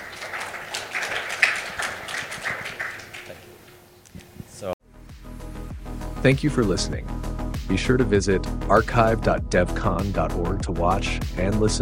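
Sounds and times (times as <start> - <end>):
audience applause: 0.0 - 3.8
speech: 6.2 - 11.8.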